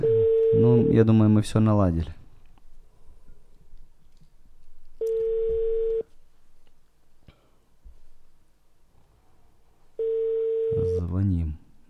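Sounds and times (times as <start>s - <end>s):
telephone ringback tone: 0.0s - 1.0s, 5.0s - 6.0s, 10.0s - 11.0s
speech: 0.9s - 2.2s.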